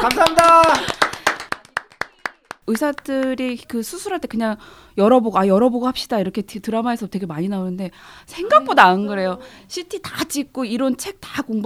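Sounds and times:
clapping hands: 0:00.0 - 0:03.4
speech: 0:02.7 - 0:11.6.

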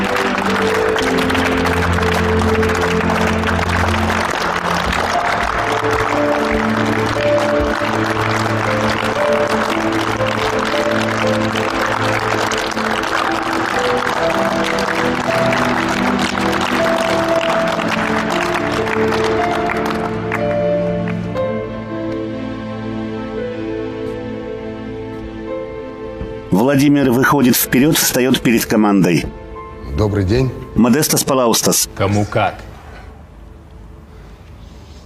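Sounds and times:
sports team applauding as the coach leaves: 0:00.0 - 0:21.6
low music: 0:00.0 - 0:34.9
speech: 0:26.8 - 0:29.4, 0:30.0 - 0:32.6.

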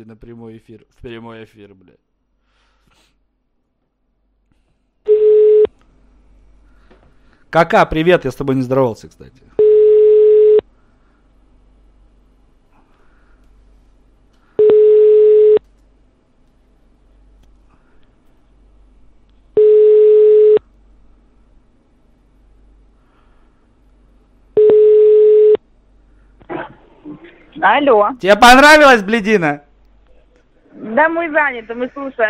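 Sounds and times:
speech: 0:00.0 - 0:02.1, 0:07.5 - 0:09.5, 0:27.6 - 0:29.7, 0:30.8 - 0:32.2
quiet phone line hiss: 0:05.1 - 0:05.7, 0:09.6 - 0:10.6, 0:14.6 - 0:15.6, 0:19.6 - 0:20.6, 0:24.6 - 0:25.6
ringback tone on a phone line: 0:14.6 - 0:15.6, 0:24.6 - 0:25.6.

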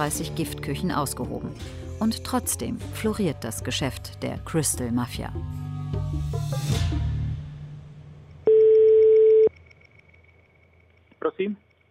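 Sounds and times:
speech: 0:00.0 - 0:06.9
telephone line tone while a call is connecting: 0:08.5 - 0:09.5.

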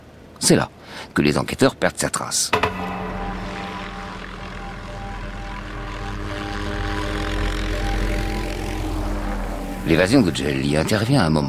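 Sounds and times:
speech: 0:00.4 - 0:03.0, 0:09.8 - 0:11.4
helicopter engine and rotor: 0:05.6 - 0:10.2.

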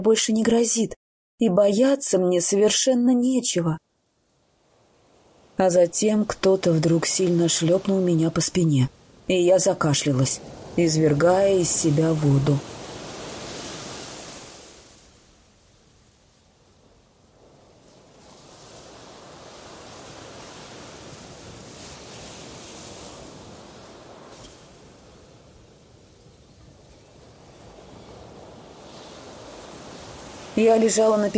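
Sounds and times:
speech: 0:00.0 - 0:03.9, 0:05.6 - 0:12.8, 0:30.6 - 0:31.3
small waves breaking on a sandy beach: 0:04.0 - 0:31.3.

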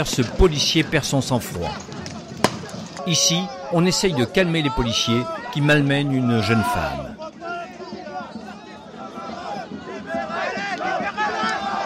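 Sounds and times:
speech: 0:00.0 - 0:01.9, 0:03.1 - 0:07.2
protesters shouting: 0:02.6 - 0:11.8.

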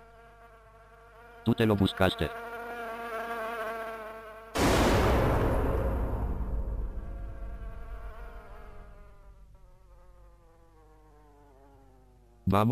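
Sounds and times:
housefly buzzing near a bowl of soup: 0:00.0 - 0:04.6, 0:06.7 - 0:12.5
speech: 0:01.5 - 0:02.5, 0:12.5 - 0:12.7
sudden loud blast: 0:04.6 - 0:09.6.

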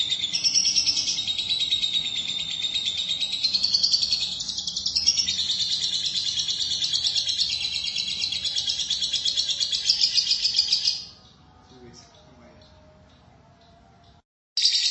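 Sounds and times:
lovebird trilling: 0:00.0 - 0:11.2, 0:14.6 - 0:14.8.

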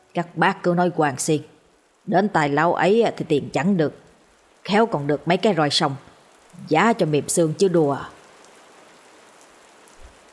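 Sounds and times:
heavy pouring rain: 0:00.0 - 0:10.3
speech: 0:00.2 - 0:01.5, 0:02.1 - 0:04.0, 0:04.6 - 0:08.2.

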